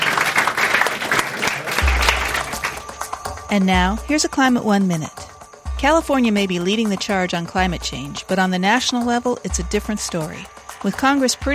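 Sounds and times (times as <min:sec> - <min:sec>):
crowd applauding: 0:00.0 - 0:03.5
speech: 0:03.5 - 0:11.5.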